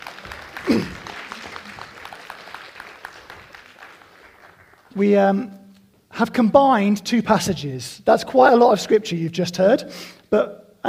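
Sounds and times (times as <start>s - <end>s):
audience applause: 0.0s - 5.0s
speech: 5.0s - 5.6s, 6.2s - 10.8s.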